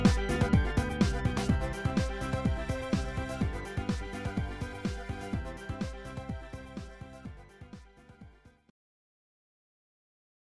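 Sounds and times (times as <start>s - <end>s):
piano beat: 0.0s - 7.5s.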